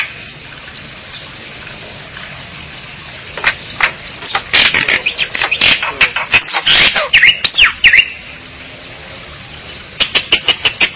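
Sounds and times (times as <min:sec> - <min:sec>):
Bali myna squawking calls: 0:03.8 - 0:08.3, 0:10.0 - 0:10.9.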